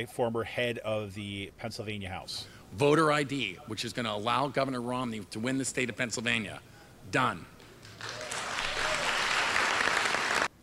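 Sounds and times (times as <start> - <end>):
speech: 0.0 - 8.2
applause: 7.6 - 10.5.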